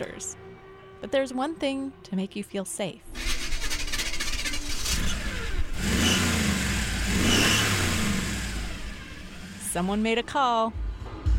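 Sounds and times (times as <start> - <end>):
speech: 0.0 - 0.4, 1.0 - 3.3, 9.8 - 10.8
car engine revving: 3.1 - 10.3.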